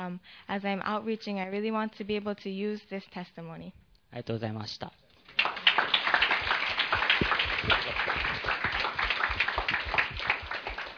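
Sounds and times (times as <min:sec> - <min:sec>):
speech: 0:00.0 - 0:05.0
audience applause: 0:05.3 - 0:10.9.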